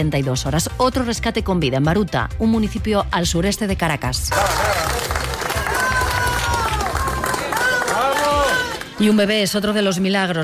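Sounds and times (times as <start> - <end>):
speech: 0.0 - 5.0, 9.0 - 10.4
crowd clapping for UME rescue workers in Baruta: 4.3 - 9.4.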